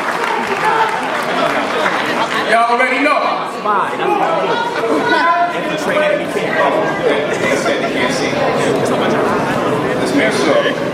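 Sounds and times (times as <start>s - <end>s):
audience applause: 0.0s - 3.0s
speech: 2.5s - 10.9s
laughter: 4.0s - 10.9s.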